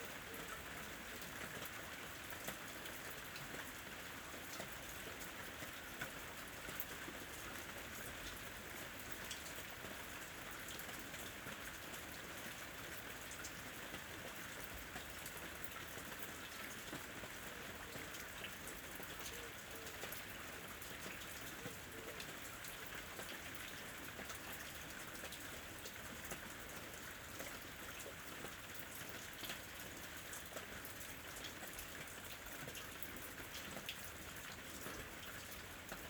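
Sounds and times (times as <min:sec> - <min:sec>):
rain: 0:00.0 - 0:36.0.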